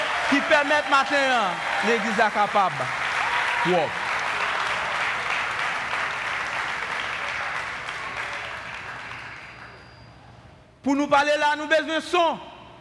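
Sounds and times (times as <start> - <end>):
audience applause: 0.0 - 10.0
speech: 0.3 - 3.0, 3.6 - 4.0, 10.8 - 12.5.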